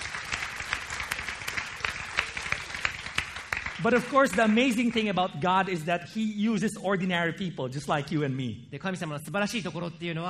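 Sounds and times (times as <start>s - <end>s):
audience applause: 0.0s - 5.2s
speech: 3.8s - 10.2s.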